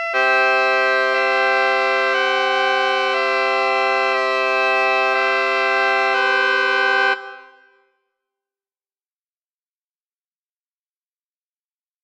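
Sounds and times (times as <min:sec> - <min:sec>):
supermajor chord: 0:00.2 - 0:07.7.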